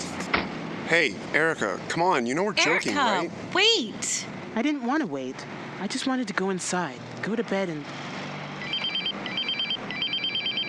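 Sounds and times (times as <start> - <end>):
speech: 0.9 - 8.1
telephone ringing with a trilling electronic bell: 8.6 - 10.6.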